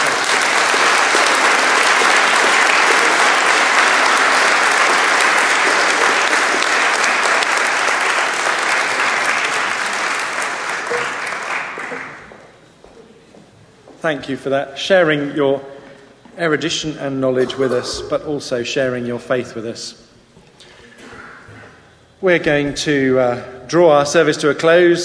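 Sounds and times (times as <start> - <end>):
audience applause: 0.0 - 12.4
speech: 14.1 - 15.7, 16.4 - 20.0, 22.2 - 25.0.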